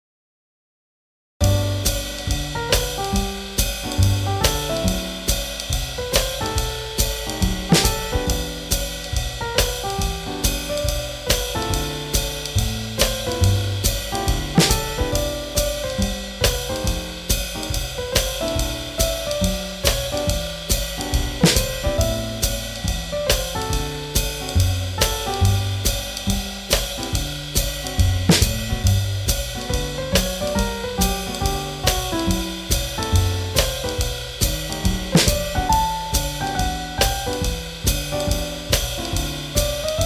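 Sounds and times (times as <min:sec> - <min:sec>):
swing jazz: 0:01.4 - 0:40.0.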